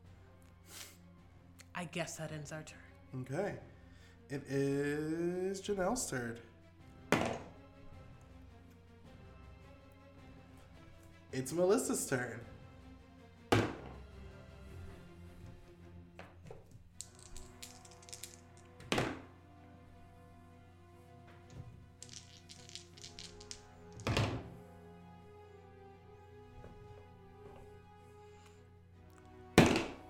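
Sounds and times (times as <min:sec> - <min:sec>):
speech: 0:01.8 - 0:06.5, 0:11.3 - 0:12.5
dice rolling on a table: 0:07.1 - 0:07.5, 0:16.2 - 0:19.3, 0:21.5 - 0:24.5.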